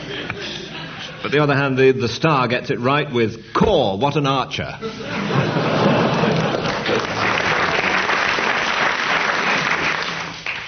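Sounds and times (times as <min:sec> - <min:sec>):
laughter: 0:00.0 - 0:01.6, 0:04.8 - 0:08.6
speech: 0:01.2 - 0:05.6
studio audience applause during a quiz game: 0:05.6 - 0:10.6.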